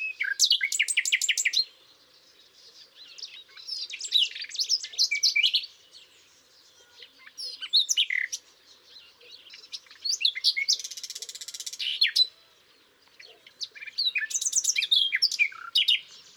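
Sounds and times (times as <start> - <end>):
common nightingale Luscinia megarhynchos song: 0.0 - 16.3.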